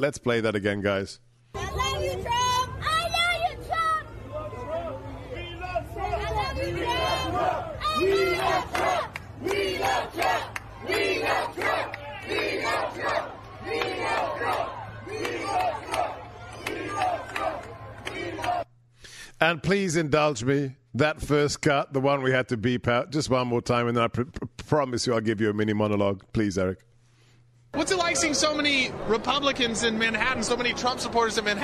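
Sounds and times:
speech: 0.0 - 2.4, 19.4 - 26.9, 27.7 - 31.6
crowd chanting: 3.9 - 18.7
high young voices chanting: 5.9 - 18.6.

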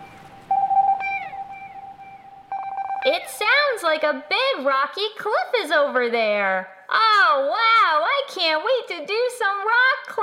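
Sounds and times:
stylized bat echolocation electronic tone: 0.0 - 3.3
speech: 3.0 - 10.2.

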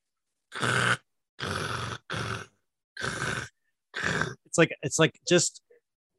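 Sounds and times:
imitated black metal harsh vocals: 0.5 - 4.5
speech: 4.6 - 5.7.

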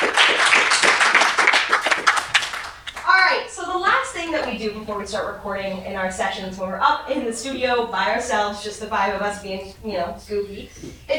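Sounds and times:
audience applause for a guest: 0.0 - 3.1
speech: 4.3 - 11.1.

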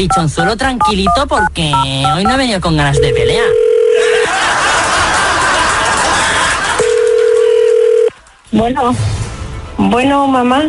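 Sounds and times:
speech: 0.0 - 3.5, 8.6 - 9.2, 9.8 - 10.6
telephone dialing and ringing tone: 3.0 - 4.1, 6.8 - 8.1
laughter: 3.9 - 7.6.

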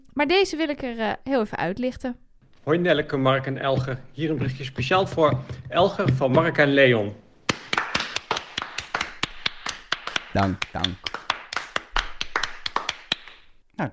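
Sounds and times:
speech: 0.2 - 7.2, 10.4 - 11.2
applause: 7.5 - 13.5.

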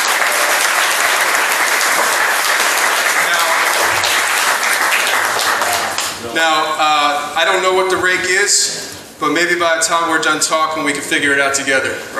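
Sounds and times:
audience applause: 0.0 - 6.3
speech: 6.4 - 12.1.

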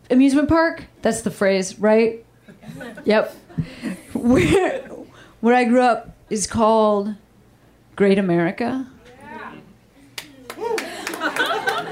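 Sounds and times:
speech: 0.1 - 7.2, 8.0 - 8.9
laughter: 2.5 - 5.0, 10.5 - 11.9
people clapping: 10.1 - 11.9.

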